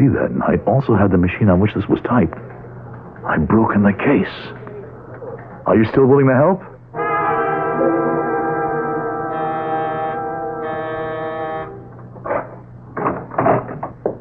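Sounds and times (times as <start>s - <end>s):
speech: 0.0s - 2.6s, 3.2s - 4.6s, 5.6s - 6.7s
electric doorbell buzzing: 7.0s - 12.0s.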